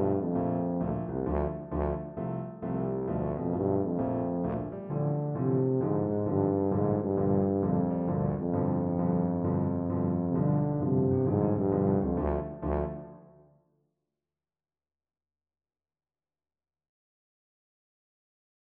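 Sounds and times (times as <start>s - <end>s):
tuba: 0.0s - 13.4s.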